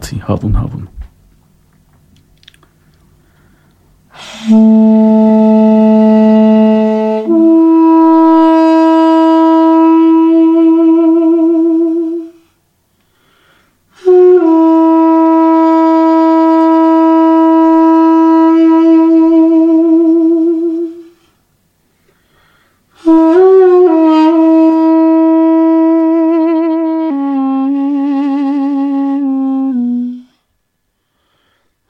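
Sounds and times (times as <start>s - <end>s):
speech: 0.1s - 1.0s, 4.4s - 5.4s
solo duduk playing long mournful notes: 4.1s - 12.4s, 14.0s - 21.2s, 23.0s - 30.3s.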